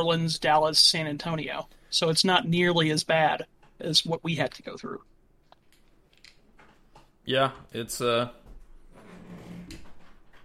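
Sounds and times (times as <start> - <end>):
speech: 0.0 - 5.1, 7.2 - 8.4
squeaky office door creaking open: 8.9 - 10.4.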